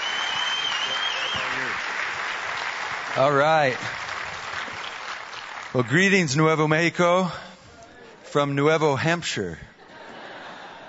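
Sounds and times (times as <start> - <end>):
church congregation applauding a guest speaker: 0.0 - 6.9
speech: 3.2 - 4.0, 5.8 - 7.5, 8.3 - 9.7
laughter: 9.8 - 10.8.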